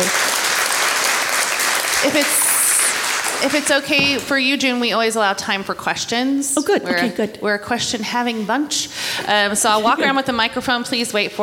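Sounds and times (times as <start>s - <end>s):
audience applauding: 0.0s - 4.3s
speech: 2.0s - 2.4s, 3.4s - 11.4s.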